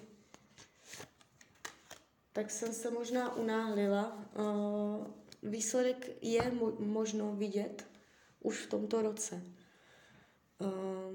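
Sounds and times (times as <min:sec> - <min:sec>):
drawing cards from a deck: 0:00.3 - 0:02.1
speech: 0:02.4 - 0:09.6, 0:10.6 - 0:11.1.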